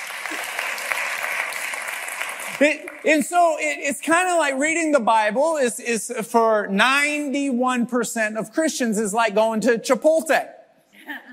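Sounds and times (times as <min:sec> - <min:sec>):
audience clapping: 0:00.0 - 0:03.8
speech: 0:02.6 - 0:11.2.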